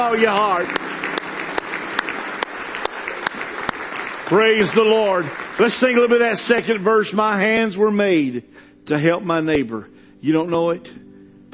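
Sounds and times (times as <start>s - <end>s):
speech: 0.0s - 0.9s, 4.3s - 11.5s
audience clapping hands in praise: 0.0s - 7.4s.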